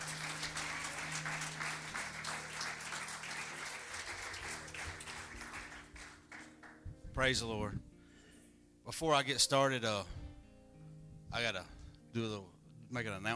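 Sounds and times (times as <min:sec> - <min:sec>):
church service audience applause welcoming a guest speaker: 0:00.0 - 0:06.9
speech: 0:07.2 - 0:07.9, 0:08.9 - 0:10.2, 0:11.3 - 0:13.3.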